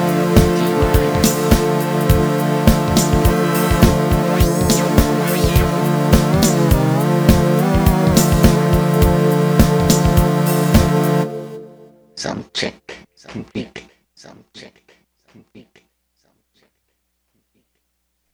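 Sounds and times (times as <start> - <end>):
soundcheck: 0.0 - 12.2.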